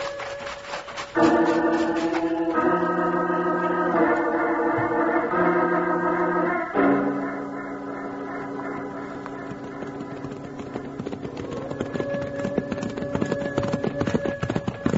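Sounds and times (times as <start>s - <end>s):
horses' hooves clip-clopping in a galloping rhythm: 0.0s - 3.1s, 8.2s - 14.9s
low sustained musical drone: 1.2s - 10.0s.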